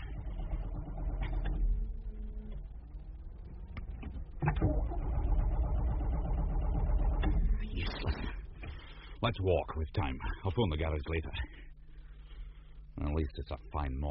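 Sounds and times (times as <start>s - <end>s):
car engine failing to start on a flat battery: 0.0s - 8.3s
speech: 9.2s - 11.7s, 13.0s - 14.0s.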